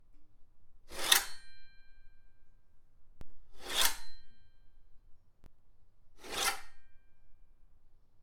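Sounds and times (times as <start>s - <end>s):
sword or knife being drawn: 3.6s - 4.3s, 6.2s - 6.9s.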